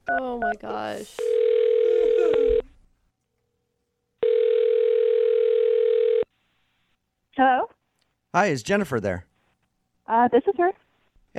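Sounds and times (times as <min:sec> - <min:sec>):
speech: 0:00.1 - 0:01.4, 0:07.4 - 0:07.8, 0:08.4 - 0:09.3, 0:10.1 - 0:10.8
telephone ringback tone: 0:01.2 - 0:02.6, 0:04.2 - 0:06.3.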